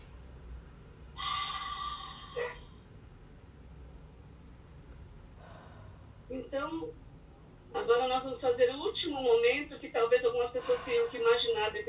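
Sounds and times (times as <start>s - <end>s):
person taking a deep breath in and breathing out: 1.2s - 2.6s, 5.4s - 6.1s
speech: 6.3s - 7.0s, 7.7s - 11.8s.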